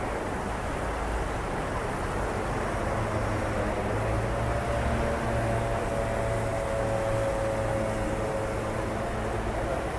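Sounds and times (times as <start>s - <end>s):
city traffic rumble at night: 0.0s - 9.9s
faint engine whine: 0.0s - 9.9s.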